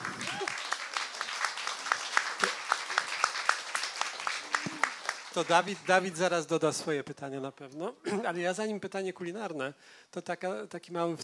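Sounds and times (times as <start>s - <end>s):
audience applause: 0.0s - 6.1s
speech: 5.4s - 11.2s.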